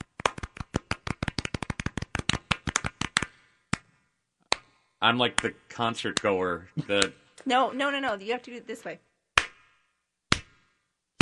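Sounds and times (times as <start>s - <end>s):
golf clap: 0.0s - 3.9s, 4.5s - 7.2s
speech: 5.0s - 9.1s.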